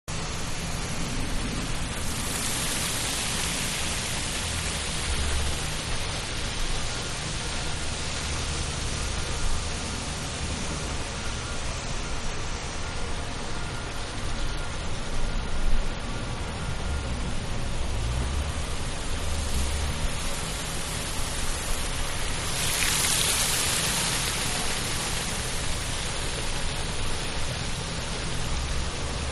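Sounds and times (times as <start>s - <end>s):
city background noise: 0.1s - 29.3s
sewage treatment plant outside a city: 0.1s - 29.3s.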